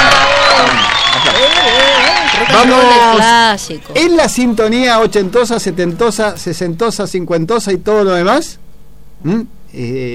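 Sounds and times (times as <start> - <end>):
crowd applause: 0.0 - 6.4
speech: 2.6 - 8.6, 9.2 - 10.1.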